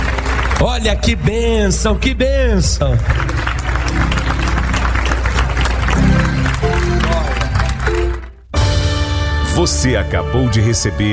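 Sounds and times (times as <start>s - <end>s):
audience applauding: 0.0s - 1.2s, 2.9s - 8.5s
speech: 0.6s - 4.3s, 9.6s - 11.1s.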